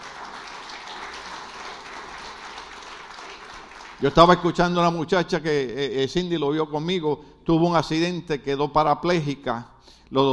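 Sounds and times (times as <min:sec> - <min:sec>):
audience applause: 0:00.0 - 0:04.5
speech: 0:04.0 - 0:10.3.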